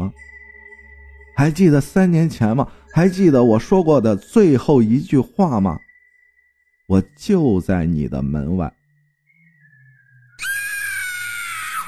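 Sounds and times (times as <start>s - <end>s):
speech: 1.4s - 5.9s, 6.9s - 8.8s
woman's frightened scream: 10.4s - 11.8s.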